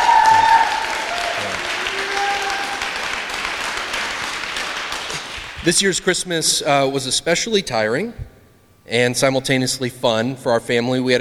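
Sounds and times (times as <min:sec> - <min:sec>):
audience applause: 0:00.0 - 0:05.6
speech: 0:05.6 - 0:08.3, 0:08.9 - 0:11.1.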